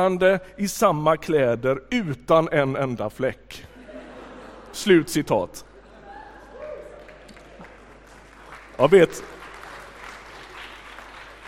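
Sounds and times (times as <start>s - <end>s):
speech: 0.0s - 3.7s, 4.7s - 5.7s, 8.8s - 9.3s
laughter: 3.6s - 7.8s
audience applause: 6.0s - 11.4s.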